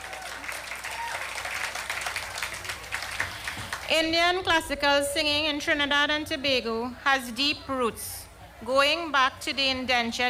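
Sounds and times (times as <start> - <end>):
audience applause: 0.0 - 3.9
speech: 3.9 - 10.2.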